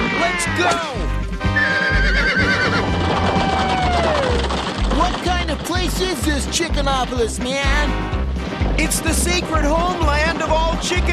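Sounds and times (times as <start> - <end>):
horse neighing: 0.0 - 4.4
speech: 0.6 - 1.0, 6.2 - 8.2, 8.8 - 11.1
steady rumble: 2.7 - 11.1
low thuds: 2.8 - 11.1.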